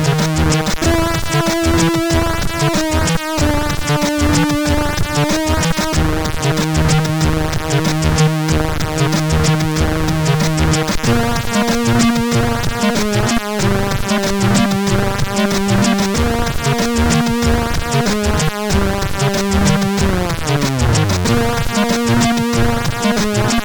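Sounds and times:
chiptune music from a sound chip: 0.0 - 23.6.

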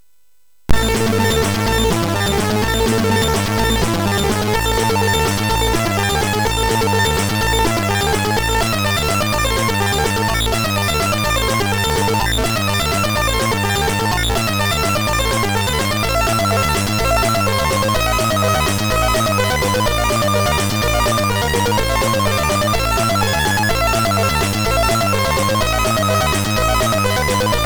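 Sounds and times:
MOS6581R3 chip music demo: 0.7 - 27.6.

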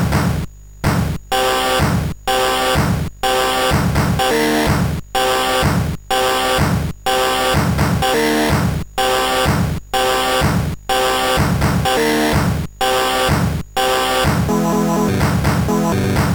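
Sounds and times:
synthesizer noise from CSG8580R5 sound chip: 0.1 - 16.3.

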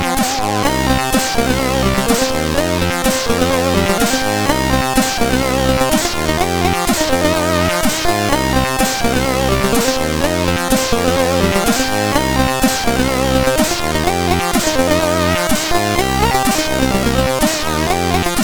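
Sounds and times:
MOS6581 chip music: 0.2 - 18.4.

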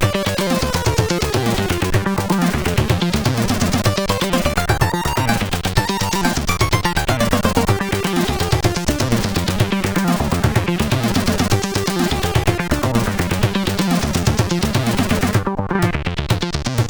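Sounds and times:
heavy acid synth music: 0.0 - 16.8.

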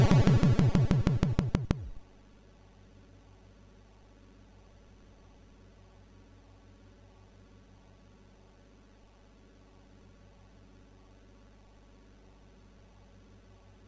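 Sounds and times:
MOS6581R3 SID chip intro music: 0.0 - 2.0.

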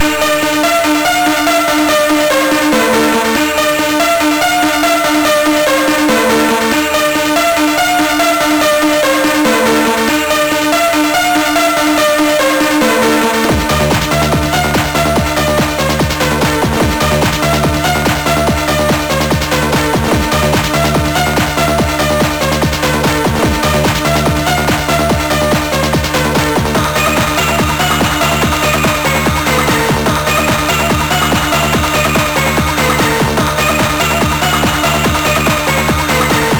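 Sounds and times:
rave music mix: 0.0 - 36.5.

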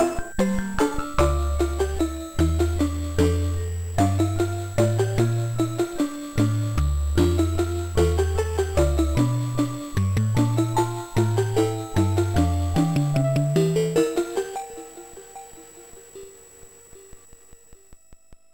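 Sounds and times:
music box melody on a MOS6581R3 sound chip: 0.0 - 14.6.

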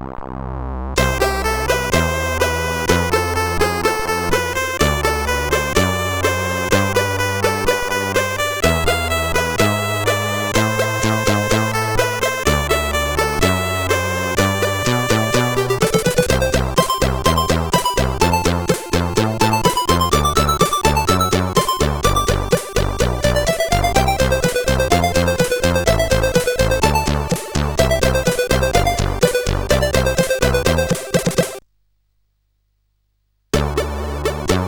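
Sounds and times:
ragtime music: 1.0 - 31.6, 33.6 - 34.6.

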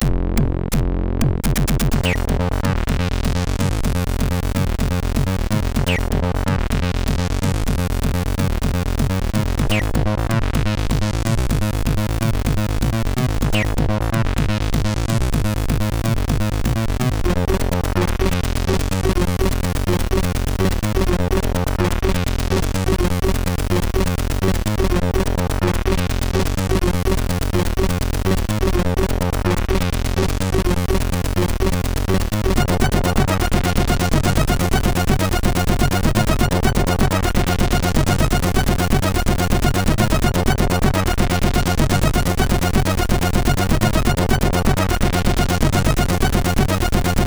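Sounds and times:
techno music on SID MOS6581 chip: 0.0 - 47.2.

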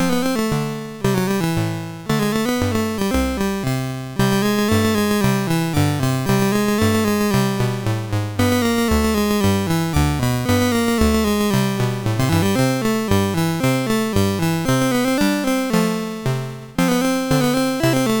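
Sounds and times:
SID MOS6581R2 chiptune game music: 0.0 - 18.1.

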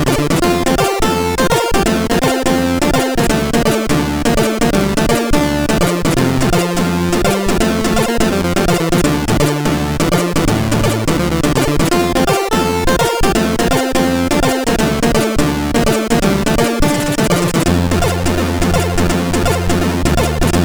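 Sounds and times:
SID chip jig on CSG 8580R5: 0.0 - 20.6.

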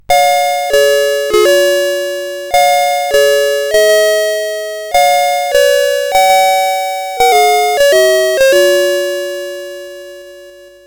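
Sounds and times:
SID CSG8580R5 chip game music: 0.0 - 10.8.

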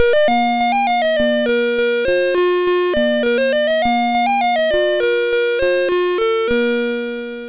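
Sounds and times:
MOS6581R3 SID chip game music: 0.0 - 7.4.

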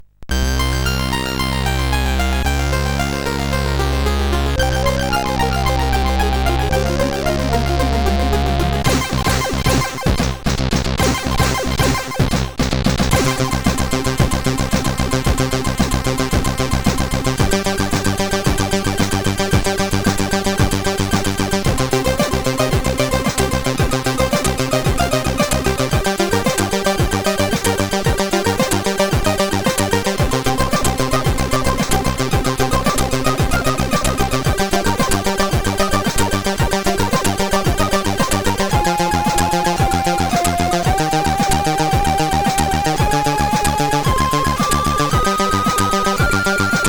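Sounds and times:
chiptune music on a SID CSG 8580R5 chip: 0.3 - 10.3, 11.0 - 12.5, 13.1 - 46.8.

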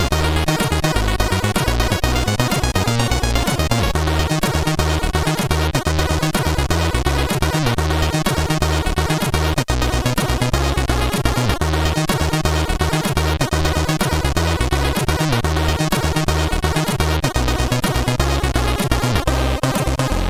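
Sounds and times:
bass attack on CSG8580R5 sound chip: 0.0 - 20.2.

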